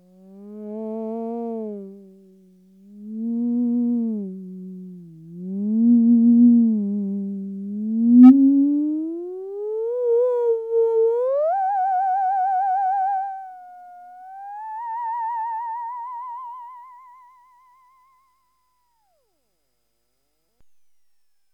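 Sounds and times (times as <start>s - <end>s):
theremin wah-wah: 3.2s - 18.0s.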